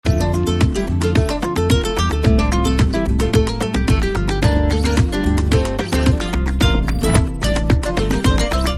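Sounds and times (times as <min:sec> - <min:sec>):
romantic trailer background music ringtone: 0:00.1 - 0:08.7.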